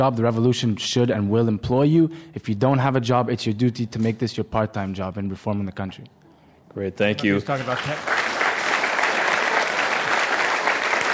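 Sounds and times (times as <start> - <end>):
speech: 0.0 - 6.2, 6.8 - 8.2
audience applause: 7.3 - 11.1.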